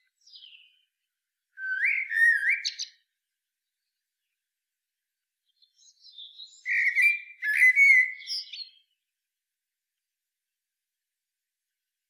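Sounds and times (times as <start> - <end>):
Eurasian blackbird Turdus merula singing: 0.1 - 0.8, 1.6 - 3.0, 5.6 - 9.0.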